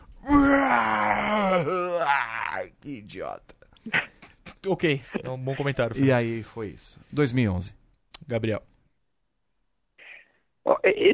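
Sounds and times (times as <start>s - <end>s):
person imitating a disappointed crowd groaning: 0.2s - 2.7s
speech: 1.6s - 8.7s.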